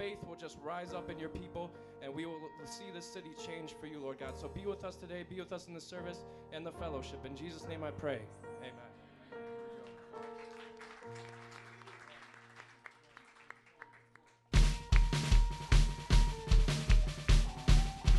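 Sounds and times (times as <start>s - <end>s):
speech: 0.1s - 8.8s
church audience clapping hands: 9.4s - 18.1s.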